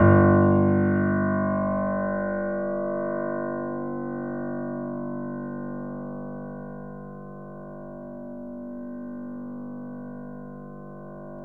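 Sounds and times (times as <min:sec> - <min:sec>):
acoustic grand piano G0 note: 0:00.0 - 0:05.8.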